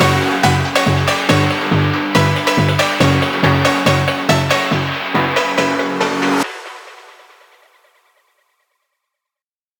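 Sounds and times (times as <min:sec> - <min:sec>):
phonk version: 0:00.0 - 0:07.5.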